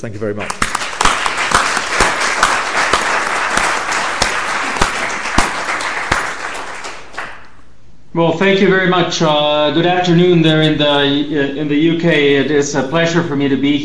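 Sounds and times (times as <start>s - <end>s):
speech: 0.0s - 0.8s, 8.2s - 13.8s
audience applause welcoming a speaker: 0.4s - 7.5s.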